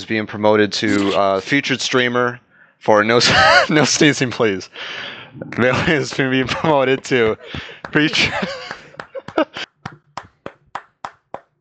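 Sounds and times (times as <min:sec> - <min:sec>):
speech: 0:00.0 - 0:08.8
laughter: 0:03.2 - 0:04.7, 0:05.5 - 0:09.7
round of applause: 0:07.5 - 0:11.5.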